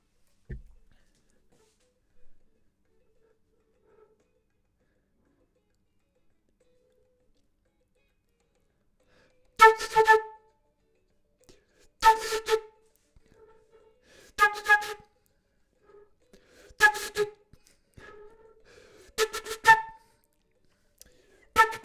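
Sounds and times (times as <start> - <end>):
flute: 9.6 - 10.5, 12.0 - 13.6, 14.3 - 15.1, 16.6 - 17.4, 18.0 - 20.1, 21.6 - 21.8.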